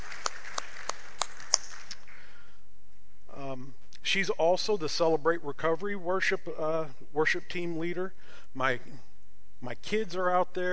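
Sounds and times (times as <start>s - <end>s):
audience applause: 0.0s - 2.0s
speech: 4.1s - 10.7s.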